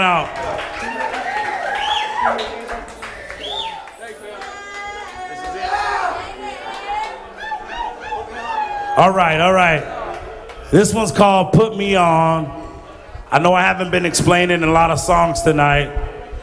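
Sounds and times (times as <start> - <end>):
speech: 0.0 - 1.1, 9.0 - 10.0, 10.7 - 12.6, 13.3 - 16.1
crowd cheering and whooping: 0.0 - 10.7
clapping: 0.1 - 5.8.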